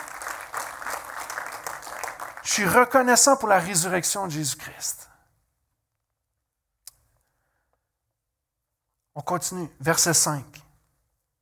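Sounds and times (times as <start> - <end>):
audience applause: 0.0 - 3.0
speech: 2.5 - 5.1, 9.2 - 10.6.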